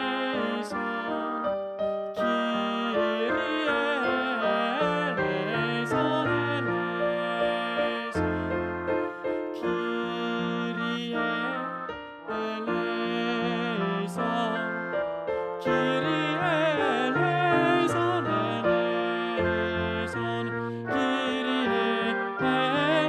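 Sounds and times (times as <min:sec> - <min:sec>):
tenor singing a kyrie: 0:00.0 - 0:23.0.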